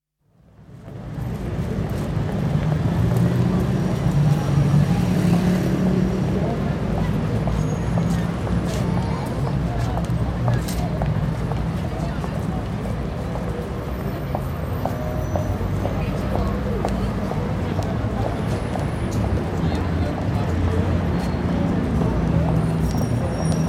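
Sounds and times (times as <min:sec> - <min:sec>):
heavy traffic: 0:00.4 - 0:23.6
international crowds passing: 0:00.6 - 0:23.6.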